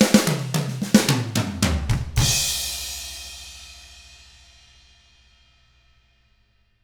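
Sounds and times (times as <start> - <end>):
pop rock drums: 0.0 - 3.6.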